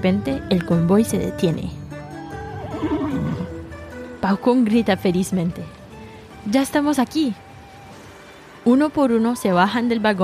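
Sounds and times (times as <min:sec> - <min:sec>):
speech: 0:00.0 - 0:01.8, 0:04.2 - 0:05.8, 0:06.4 - 0:07.4, 0:08.6 - 0:10.2
horse neighing: 0:02.2 - 0:03.7.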